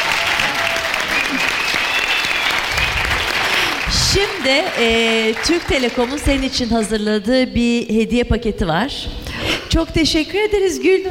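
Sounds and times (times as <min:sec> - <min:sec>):
applause: 0:00.0 - 0:06.9
speech: 0:04.1 - 0:11.0.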